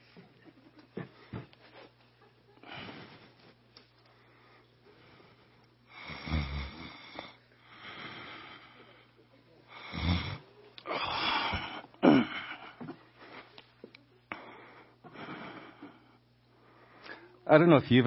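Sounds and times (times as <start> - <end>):
quiet breathing: 1.0 - 17.4
person fake snoring while pretending to doze off: 5.9 - 8.6, 9.8 - 12.5.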